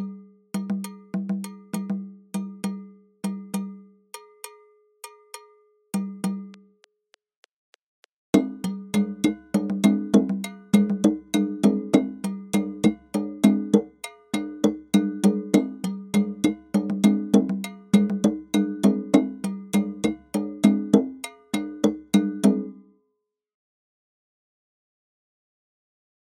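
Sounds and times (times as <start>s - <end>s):
African drum rhythm at 100 bpm: 0.6s - 2.0s, 8.4s - 22.7s.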